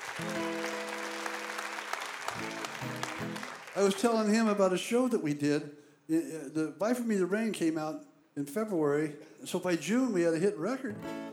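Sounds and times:
audience applause: 0:00.0 - 0:04.6
speech: 0:03.2 - 0:11.3.

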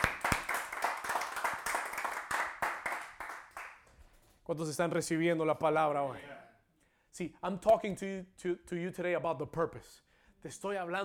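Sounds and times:
audience hand clapping: 0:00.0 - 0:04.4
speech: 0:04.5 - 0:06.4, 0:07.2 - 0:11.0.

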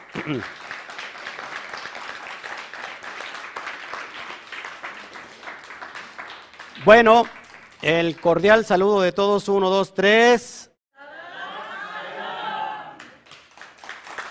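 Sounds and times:
audience applause: 0:00.0 - 0:08.4, 0:11.8 - 0:14.2
speech: 0:00.2 - 0:00.7, 0:06.8 - 0:10.6.

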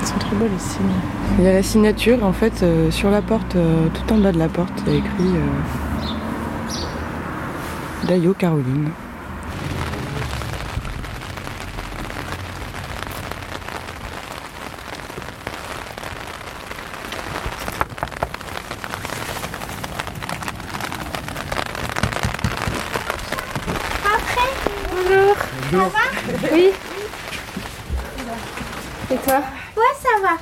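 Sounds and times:
heavy stormy rain beating on a surface: 0:00.0 - 0:30.3
speech: 0:00.2 - 0:06.2, 0:08.0 - 0:09.0.

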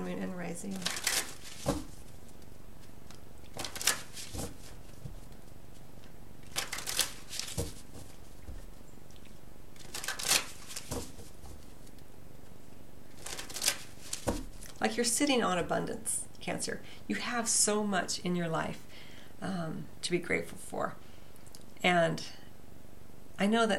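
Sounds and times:
speech: 0:00.1 - 0:01.8, 0:14.8 - 0:21.0, 0:21.8 - 0:22.4, 0:23.4 - 0:23.7
tarot cards being shuffled and drawn: 0:00.8 - 0:12.5, 0:13.1 - 0:14.8.

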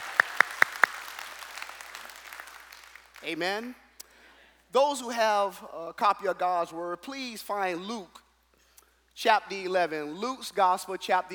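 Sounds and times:
hands clapping: 0:00.0 - 0:04.1
speech: 0:03.2 - 0:03.8, 0:04.7 - 0:08.2, 0:09.2 - 0:11.3.

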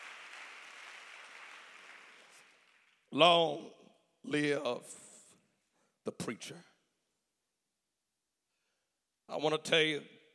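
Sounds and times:
audience clapping hands: 0:00.0 - 0:03.1
speech: 0:03.1 - 0:05.0, 0:06.0 - 0:06.7, 0:09.3 - 0:10.2.

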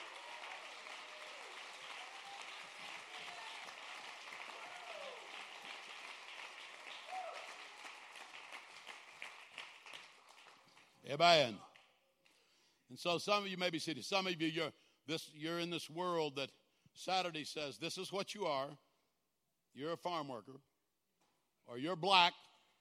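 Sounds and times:
audience clapping hands: 0:00.0 - 0:12.4
speech: 0:11.1 - 0:11.7, 0:12.9 - 0:18.8, 0:19.7 - 0:20.7, 0:21.7 - 0:22.5.

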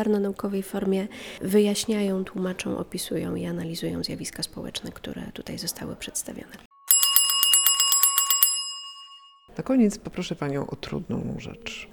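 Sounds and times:
speech: 0:00.0 - 0:06.7, 0:09.6 - 0:11.9
small bell ringing: 0:06.9 - 0:09.5.

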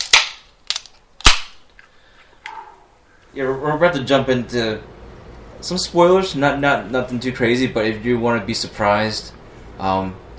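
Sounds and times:
beer can cracking open: 0:00.0 - 0:01.6
speech: 0:03.4 - 0:04.9, 0:05.6 - 0:10.2.

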